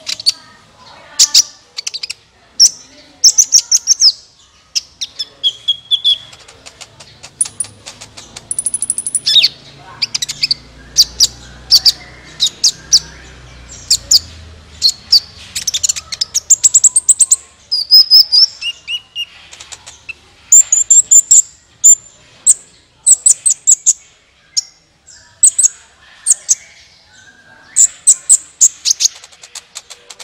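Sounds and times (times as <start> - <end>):
sunbird song: 0.0 - 30.2.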